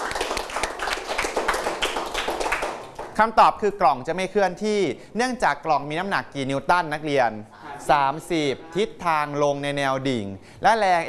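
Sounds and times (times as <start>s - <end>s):
students clapping: 0.0s - 3.2s
speech: 3.2s - 11.0s.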